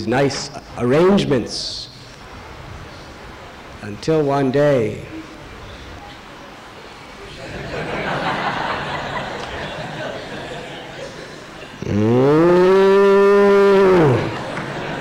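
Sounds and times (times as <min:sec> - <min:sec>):
speech: 0:00.0 - 0:01.9, 0:03.8 - 0:05.2
laughter: 0:07.2 - 0:12.0, 0:13.9 - 0:14.9
cow mooing: 0:11.8 - 0:14.4.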